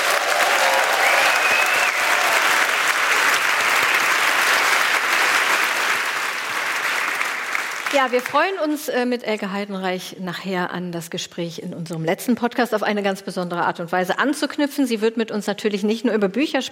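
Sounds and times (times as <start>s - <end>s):
audience applause in Deutsches Theater: 0.0s - 8.6s
speech: 8.0s - 16.6s.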